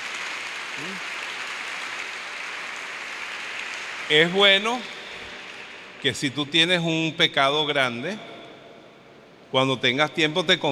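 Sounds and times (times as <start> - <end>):
audience applause: 0.0 - 6.0
speech: 0.8 - 1.2, 4.1 - 5.0, 6.0 - 8.3, 9.5 - 10.7.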